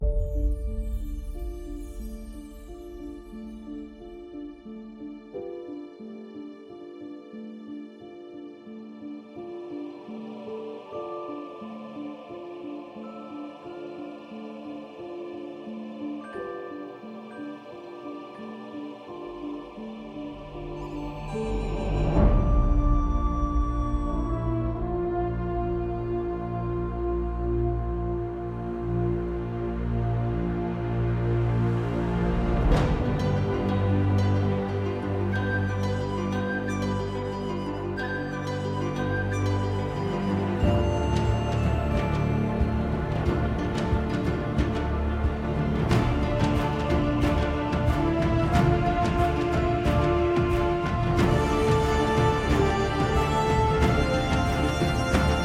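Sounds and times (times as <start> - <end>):
epic trailer orchestral music: 0.0 - 55.4.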